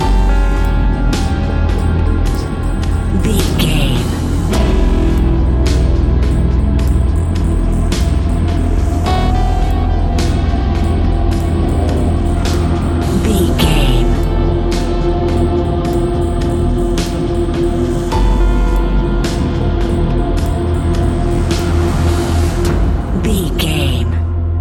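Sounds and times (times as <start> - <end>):
horror haunting whispers: 0.0 - 24.5.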